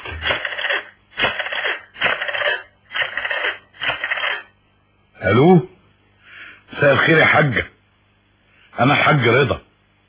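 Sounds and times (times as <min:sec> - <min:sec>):
telephone being dialed in a radio drama: 0:00.2 - 0:04.5
speech: 0:05.2 - 0:05.7, 0:06.8 - 0:07.8, 0:08.8 - 0:09.6.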